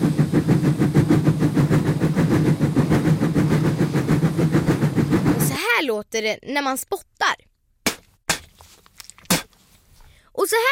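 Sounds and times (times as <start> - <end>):
old-fashioned steam train chugging: 0.0 - 6.0
speech: 6.1 - 7.5, 10.4 - 10.7.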